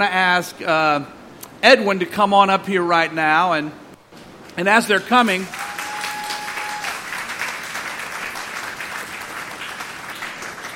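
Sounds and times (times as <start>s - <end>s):
speech: 0.0s - 3.8s, 4.6s - 5.6s
audience clapping at a church gathering: 5.2s - 10.7s.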